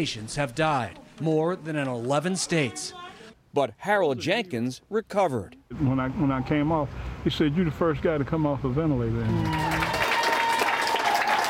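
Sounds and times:
speech: 0.0 - 9.8
hospital staff cheering and applauding: 9.2 - 11.4.

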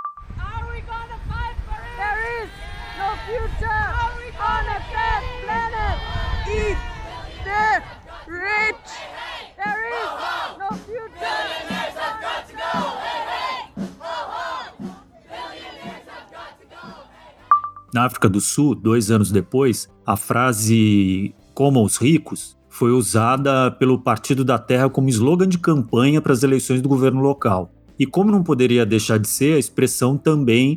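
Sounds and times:
large rally crowd chanting a slogan in unison: 0.4 - 18.1
speech: 2.4 - 9.2, 18.0 - 30.7.

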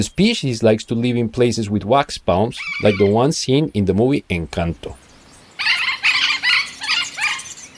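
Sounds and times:
speech: 0.0 - 5.0
parrot calling: 2.6 - 3.2, 5.5 - 7.7.

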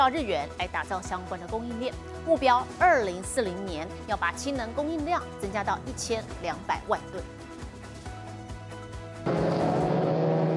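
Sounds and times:
speech: 0.0 - 7.4
race car speeding on track: 9.3 - 10.5.

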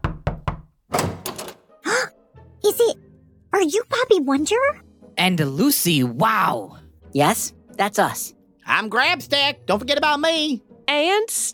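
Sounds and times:
knocking on a study room door: 0.0 - 1.6
speech: 3.7 - 11.5.

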